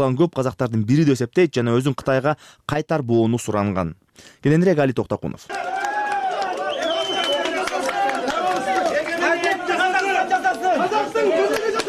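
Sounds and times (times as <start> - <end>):
speech: 0.0 - 5.8
crowd noisily greeting a woman leaving a courtroom: 6.6 - 11.8.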